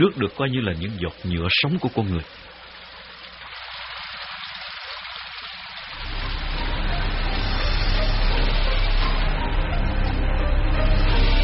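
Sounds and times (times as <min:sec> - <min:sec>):
speech: 0:00.0 - 0:02.6
steady rain falling on a drifting boat at sea: 0:00.0 - 0:09.5
low rumbling undertone: 0:06.0 - 0:11.4.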